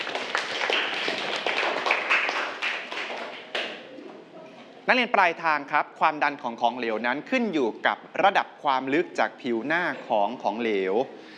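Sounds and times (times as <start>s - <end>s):
students clapping: 0.0s - 3.9s
speech: 4.9s - 11.2s.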